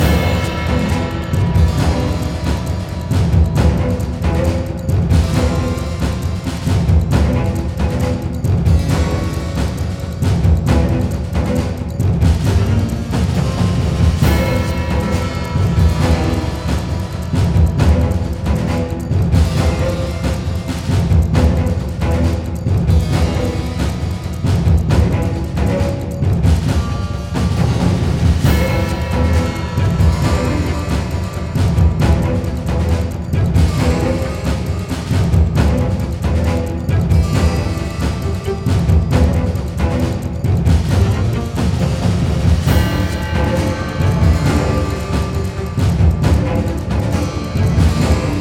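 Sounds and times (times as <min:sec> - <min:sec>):
fight music loop: 0:00.0 - 0:48.3.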